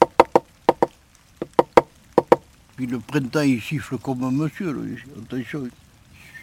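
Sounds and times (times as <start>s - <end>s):
knocks on wood imitating a woodpecker drumming on a dead tree: 0.0s - 2.5s
speech: 2.8s - 5.8s.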